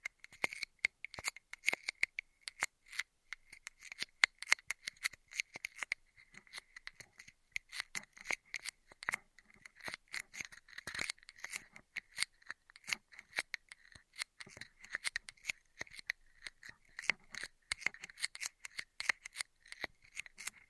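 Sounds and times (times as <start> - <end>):
straw triggers: 0.0 - 20.6.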